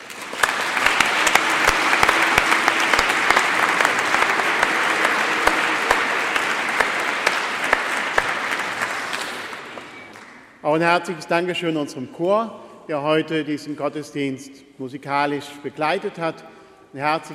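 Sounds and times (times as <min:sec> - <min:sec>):
church audience applause: 0:00.0 - 0:10.5
speech: 0:10.8 - 0:17.3.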